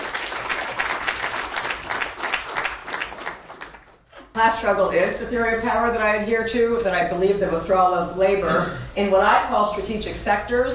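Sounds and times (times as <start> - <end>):
audience applause: 0.0 - 4.0
speech: 4.4 - 10.7.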